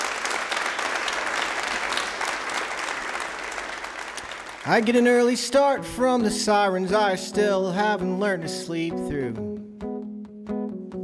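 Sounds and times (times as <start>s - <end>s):
audience applause: 0.0s - 5.4s
speech: 4.7s - 9.6s.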